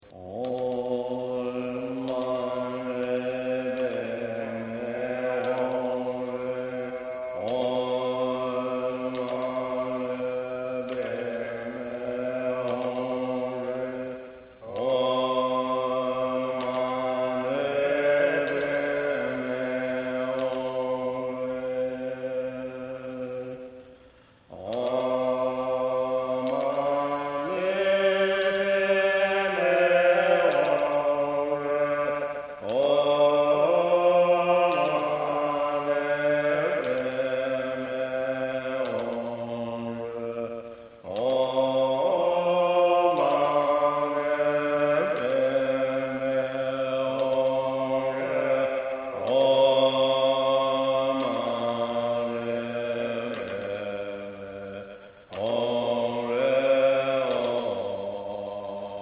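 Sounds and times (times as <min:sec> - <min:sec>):
mantra chanting: 0:00.0 - 0:59.0.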